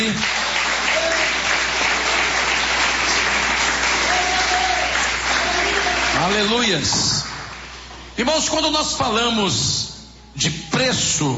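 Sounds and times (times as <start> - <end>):
audience clapping: 0.0 - 8.0
speech: 6.2 - 7.2, 8.2 - 9.8, 10.4 - 11.3.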